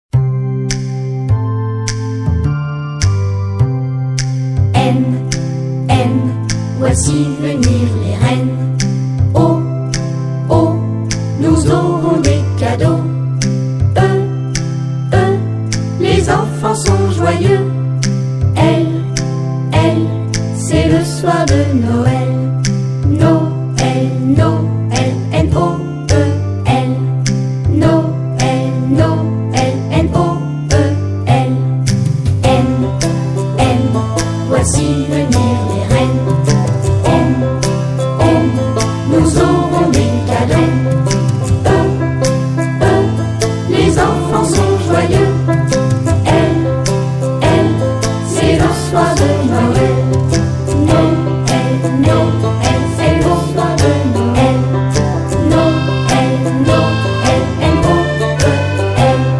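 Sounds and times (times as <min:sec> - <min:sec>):
Christmas music: 0:00.1 - 0:59.3.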